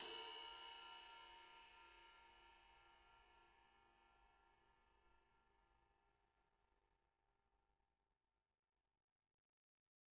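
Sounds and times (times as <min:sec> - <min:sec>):
ride cymbals: 0:00.0 - 0:01.9.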